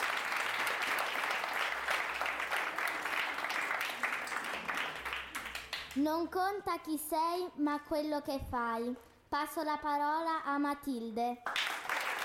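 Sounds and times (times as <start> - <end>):
school class applauding: 0.0 - 6.0, 11.4 - 12.2
speech: 6.0 - 11.6.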